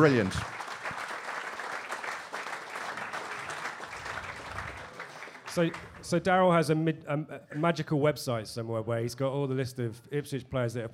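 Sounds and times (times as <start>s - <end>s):
speech: 0.0s - 0.6s, 5.6s - 10.9s
audience applause: 0.0s - 6.2s.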